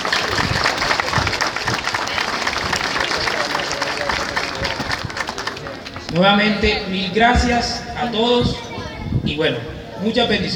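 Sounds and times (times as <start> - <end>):
audience applause: 0.0 - 6.1
speech: 6.2 - 8.6, 9.3 - 10.5.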